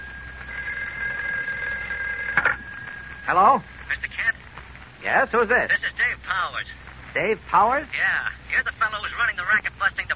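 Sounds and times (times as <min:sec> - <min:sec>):
telephone ringing in Kent's office: 0:00.0 - 0:04.4
speech: 0:03.3 - 0:04.4, 0:05.0 - 0:10.1.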